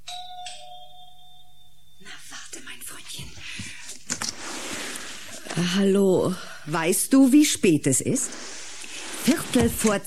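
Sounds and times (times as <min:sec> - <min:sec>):
doorbell ringing: 0:00.0 - 0:02.0
speech: 0:05.6 - 0:08.5, 0:09.2 - 0:10.0.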